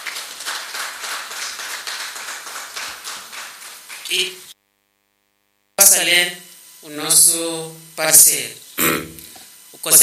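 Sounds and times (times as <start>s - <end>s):
room full of people applauding: 0.0s - 4.5s
speech: 4.1s - 4.5s, 6.0s - 9.2s.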